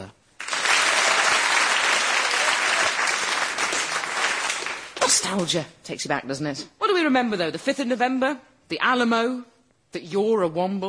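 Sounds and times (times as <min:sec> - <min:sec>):
audience clapping hands: 0:00.3 - 0:05.5
speech: 0:05.2 - 0:10.8.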